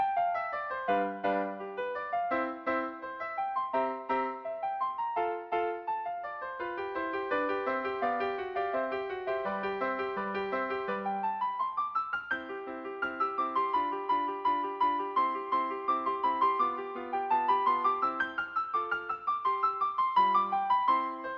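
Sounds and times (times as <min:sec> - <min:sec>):
piano sonatina: 0:00.0 - 0:21.3.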